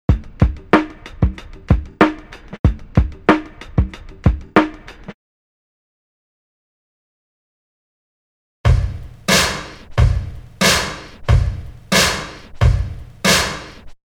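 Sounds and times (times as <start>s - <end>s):
drum loop: 0.1s - 5.1s, 8.7s - 14.0s.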